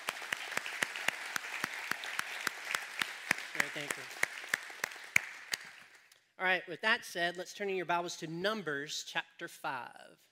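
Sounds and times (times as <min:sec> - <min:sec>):
audience applause: 0:00.0 - 0:06.0
speech: 0:03.6 - 0:04.3, 0:06.4 - 0:10.2.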